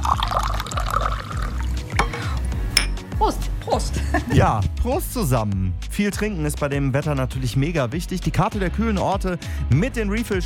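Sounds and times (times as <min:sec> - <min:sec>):
water being poured into a glass: 0:00.0 - 0:02.5
speech: 0:03.8 - 0:10.4.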